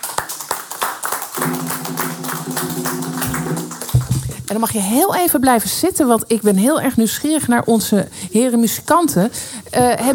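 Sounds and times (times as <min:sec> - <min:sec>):
audience applause: 0:00.0 - 0:04.6
sustained musical tone: 0:01.4 - 0:04.5
speech: 0:04.5 - 0:10.1.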